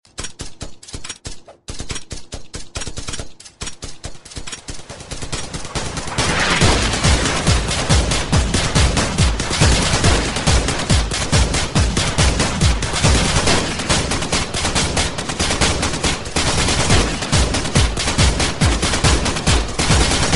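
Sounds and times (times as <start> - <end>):
gunshot: 5.4 - 20.3.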